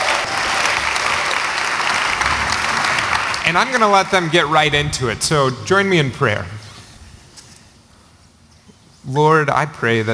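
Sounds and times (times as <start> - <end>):
audience applause in a chapel welcoming two guests: 0.0 - 4.8
speech: 3.5 - 6.6, 9.1 - 10.1.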